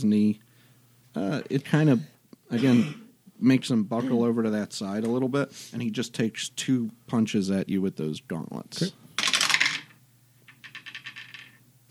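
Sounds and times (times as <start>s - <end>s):
speech: 0.0s - 0.5s, 1.2s - 9.0s
die spinning on a table: 9.2s - 11.6s.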